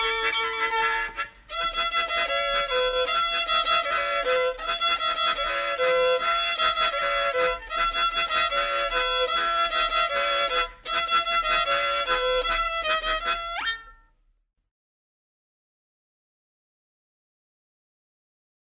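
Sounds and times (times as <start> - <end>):
strings: 0.0 - 14.1.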